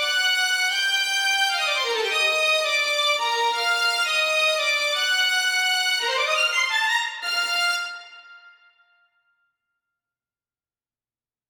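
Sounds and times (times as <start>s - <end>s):
studio strings playing: 1.0s - 8.1s.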